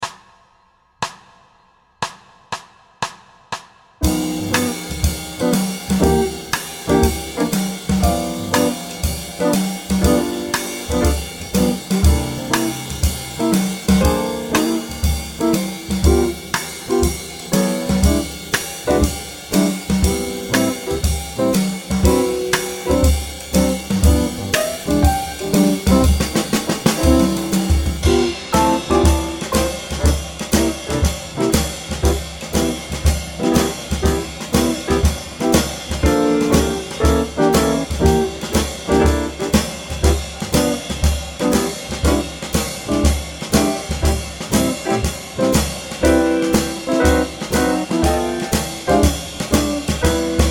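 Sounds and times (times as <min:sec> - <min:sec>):
jazz blues swing music in G: 0:04.0 - 0:50.4.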